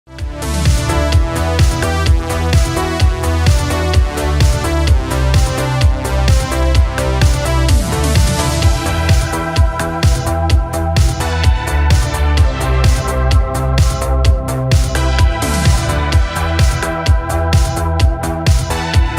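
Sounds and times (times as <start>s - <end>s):
80s synthwave and retrowave background music: 0.1s - 19.1s.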